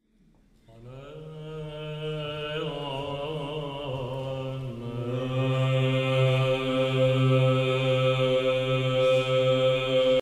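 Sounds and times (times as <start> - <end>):
Byzantine choir chanting: 0.8 - 10.1.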